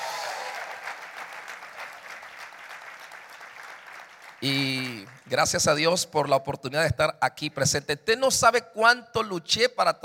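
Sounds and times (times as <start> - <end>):
audience applause: 0.0 - 5.3
speech: 4.4 - 10.0.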